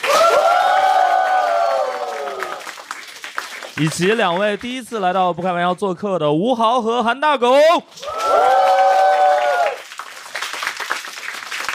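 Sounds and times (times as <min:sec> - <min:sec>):
audience whooping cheer welcoming guests: 0:00.0 - 0:02.8, 0:08.0 - 0:09.9
audience clapping to welcome guests: 0:00.0 - 0:05.8, 0:08.0 - 0:11.7
speech: 0:03.8 - 0:08.5.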